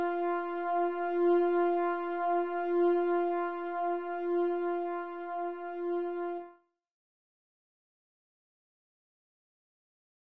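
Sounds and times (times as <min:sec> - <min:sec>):
french horn playing a hymn: 0:00.0 - 0:06.5.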